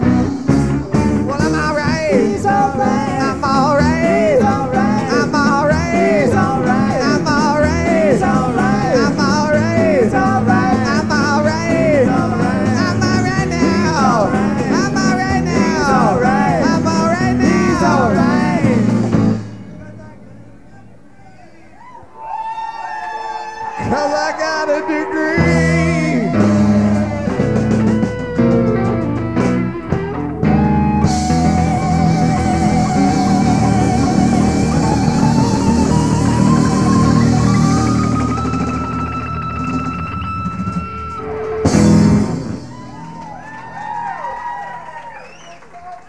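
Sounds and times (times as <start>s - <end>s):
blues music: 0.0s - 46.0s.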